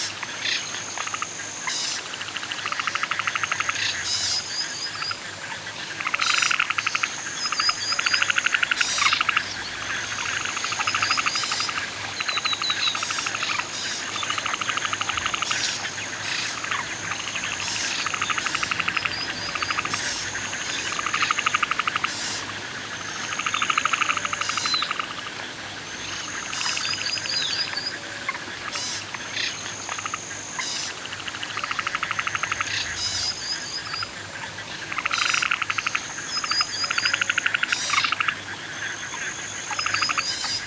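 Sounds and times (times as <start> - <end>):
nature sounds at a lake at night: 0.0 - 40.6
canoeing on a lake at night: 8.7 - 28.4.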